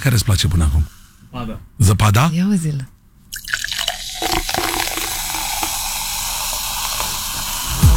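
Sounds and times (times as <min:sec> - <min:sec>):
speech: 0:00.0 - 0:03.6
fizzy acidic juice poured into a glass: 0:03.3 - 0:07.7.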